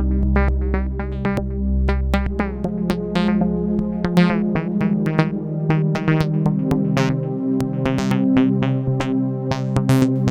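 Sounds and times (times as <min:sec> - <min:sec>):
synthesizer portamento sequence: 0:00.0 - 0:10.2.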